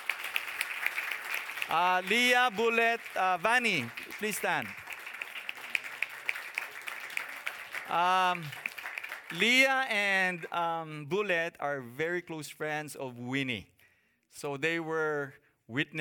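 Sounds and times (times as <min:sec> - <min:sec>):
audience applause: 0:00.0 - 0:09.8
speech: 0:01.7 - 0:04.8, 0:07.9 - 0:08.6, 0:09.3 - 0:13.7, 0:14.4 - 0:15.9.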